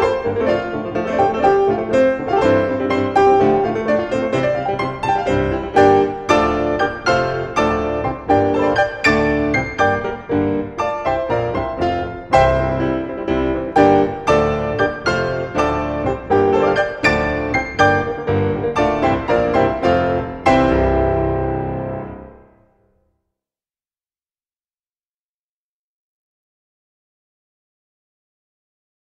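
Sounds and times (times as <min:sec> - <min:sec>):
piano duet: 0:00.0 - 0:22.9.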